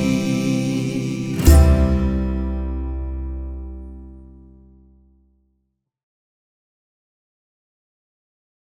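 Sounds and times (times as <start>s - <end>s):
Portuguese song: 0.0s - 4.8s.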